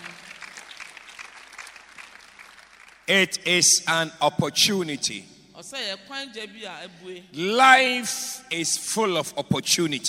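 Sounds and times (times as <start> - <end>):
audience clapping: 0.0 - 3.2
speech: 3.1 - 10.0.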